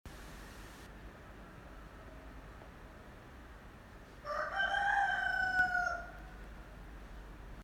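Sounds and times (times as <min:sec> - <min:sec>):
rooster crowing: 0:04.2 - 0:06.3.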